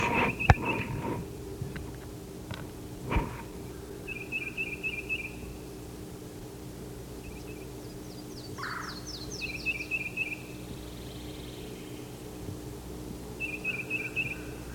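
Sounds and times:
yellow-throated warbler calling: 0.0 - 1.2, 3.2 - 5.8, 7.1 - 12.4, 13.3 - 14.7
steady low hum: 0.0 - 14.7.

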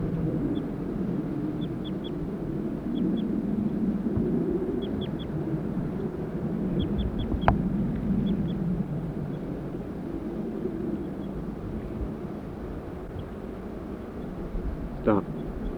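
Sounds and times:
male and female birds calling: 0.0 - 15.7.

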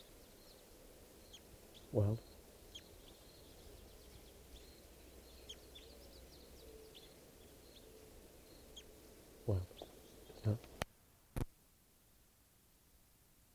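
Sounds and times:
Red crossbill calls: 0.0 - 10.8
speech: 1.9 - 2.3.

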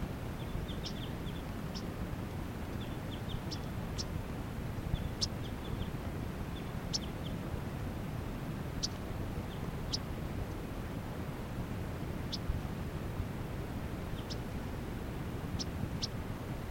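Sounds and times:
yellow-rumped warblers foraging and hovering: 0.0 - 16.6.

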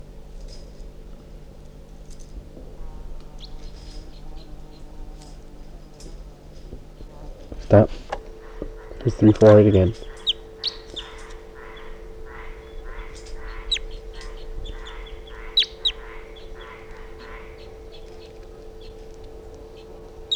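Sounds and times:
constant low hum: 0.0 - 20.3
bird calling weakly: 7.5 - 20.3
speech: 7.7 - 8.0, 9.1 - 10.1
thin high bird chirps: 9.1 - 19.1, 19.7 - 20.3.

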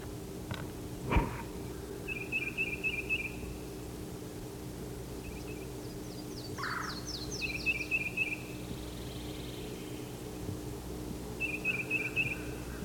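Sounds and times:
low hum: 0.0 - 12.8
yellow-throated warbler singing whistled notes: 2.1 - 3.4, 5.2 - 8.5, 11.4 - 12.5.

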